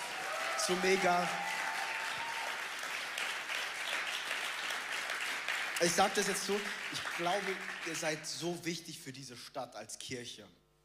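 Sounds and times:
crowd applauding: 0:00.0 - 0:08.3
speech: 0:00.6 - 0:01.6, 0:05.8 - 0:10.6.

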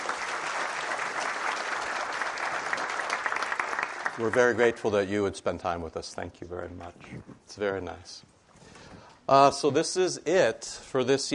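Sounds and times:
audience applause: 0:00.0 - 0:04.8
speech: 0:04.2 - 0:08.4, 0:09.3 - 0:11.3.

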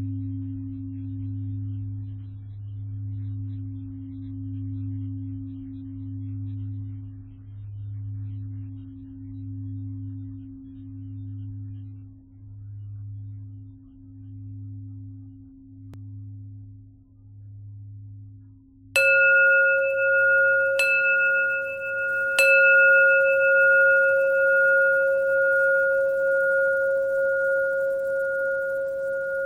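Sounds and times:
bells ringing: 0:19.0 - 0:29.4.

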